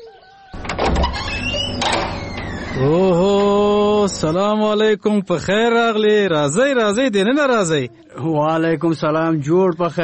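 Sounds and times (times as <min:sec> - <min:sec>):
door opened at home scraping and rattling: 0:00.6 - 0:04.4
speech: 0:02.8 - 0:03.3, 0:04.0 - 0:10.0.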